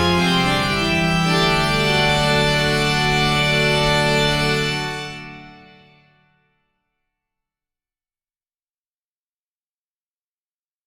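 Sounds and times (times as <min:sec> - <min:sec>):
organ: 0:00.0 - 0:06.3.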